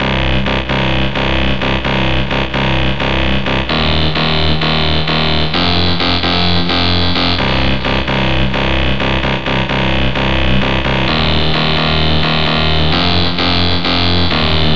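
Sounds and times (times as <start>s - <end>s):
bass: 0.0s - 14.7s.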